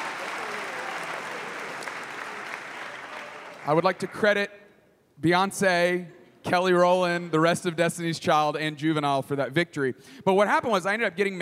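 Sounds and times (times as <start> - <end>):
audience applause: 0.0 - 4.2
speech: 3.6 - 4.6, 5.2 - 11.4.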